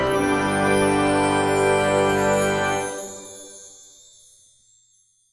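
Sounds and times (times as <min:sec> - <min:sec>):
victory jingle: 0:00.1 - 0:05.3.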